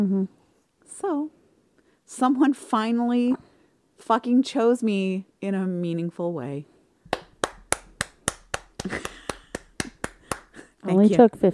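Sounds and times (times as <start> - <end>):
speech: 0.0 - 0.4, 1.0 - 1.4, 2.1 - 6.7, 10.8 - 11.5
slow clap: 7.1 - 10.7.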